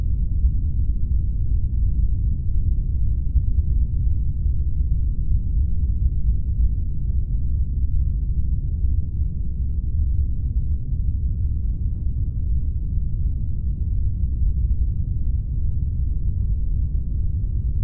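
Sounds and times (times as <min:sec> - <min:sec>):
science fiction spacecraft onboard ambience with medium speed airy rumble: 0:00.0 - 0:17.8.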